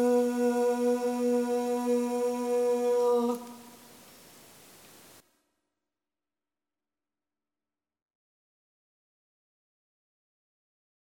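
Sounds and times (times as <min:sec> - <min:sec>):
tenor voice: 0:00.0 - 0:03.9.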